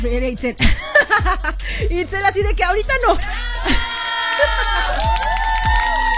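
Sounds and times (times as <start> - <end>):
speech: 0.0 - 5.4
cheering: 3.2 - 6.1
applause: 3.8 - 6.1.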